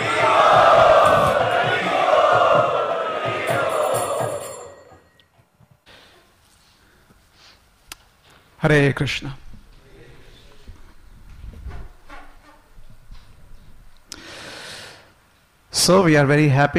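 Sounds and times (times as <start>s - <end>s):
crowd chanting loudly in welcome at a devotional gathering: 0.0s - 5.0s
speech: 8.7s - 9.4s, 15.9s - 16.7s.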